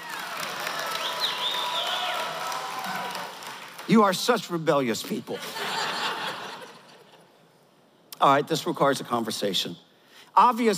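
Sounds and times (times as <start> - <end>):
audience applause: 0.0 - 4.1
speech: 3.9 - 5.7, 8.2 - 10.7
laughter: 5.3 - 7.4.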